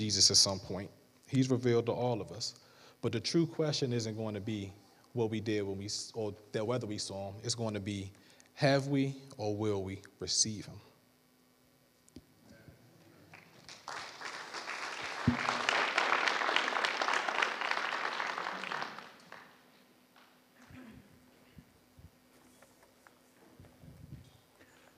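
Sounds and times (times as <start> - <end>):
speech: 0.0 - 10.9
audience applause: 13.3 - 19.6.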